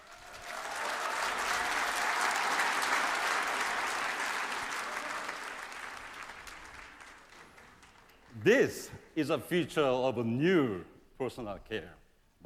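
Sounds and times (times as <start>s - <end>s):
audience applause for a guest on stage: 0.0s - 8.6s
speech: 8.4s - 12.4s.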